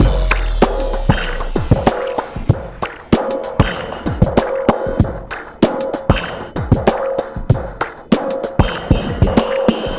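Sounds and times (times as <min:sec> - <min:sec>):
breakbeat drums: 0:00.0 - 0:09.9.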